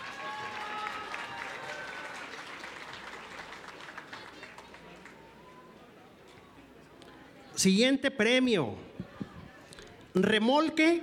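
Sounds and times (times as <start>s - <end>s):
audience applause: 0.0s - 5.3s
speech: 7.6s - 8.9s, 10.2s - 11.0s.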